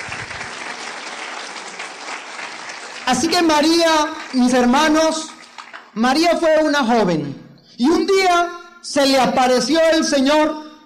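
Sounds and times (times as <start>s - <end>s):
audience applause: 0.0s - 6.0s
speech: 3.1s - 5.3s, 6.0s - 10.6s.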